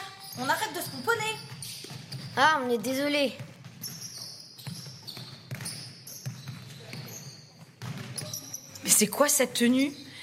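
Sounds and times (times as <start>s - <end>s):
basketball bouncing in a gym: 0.2s - 9.0s
speech: 0.4s - 1.5s, 2.4s - 3.5s, 9.0s - 10.0s.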